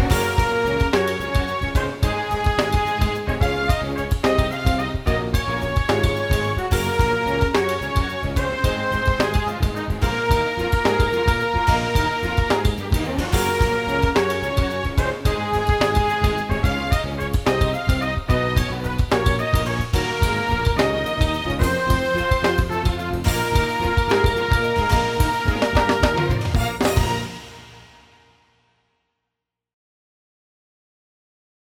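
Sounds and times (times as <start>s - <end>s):
background music: 0.0s - 28.4s.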